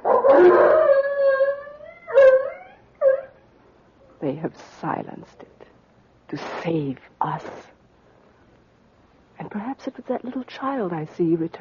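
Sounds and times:
dog howling: 0.0s - 3.4s
speech: 4.3s - 5.6s, 6.3s - 7.8s, 9.5s - 11.5s.

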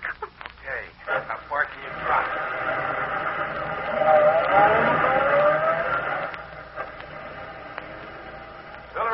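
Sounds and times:
car driving up and stopping: 1.1s - 9.0s.

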